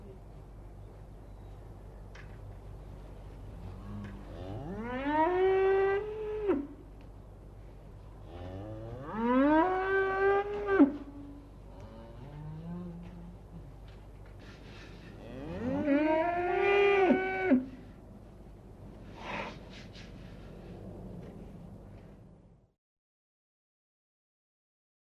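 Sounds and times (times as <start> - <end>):
cows: 3.5 - 6.8, 8.2 - 17.8.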